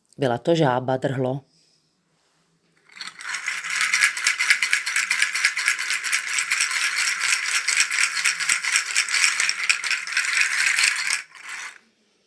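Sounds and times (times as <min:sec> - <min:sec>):
speech: 0:00.2 - 0:01.5
chajchas nut shell rattle: 0:02.9 - 0:11.8.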